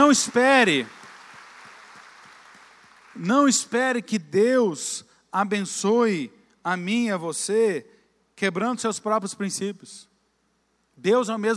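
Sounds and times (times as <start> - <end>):
speech: 0.0 - 1.0, 3.2 - 10.1, 11.0 - 11.5
audience applauding: 0.0 - 3.3.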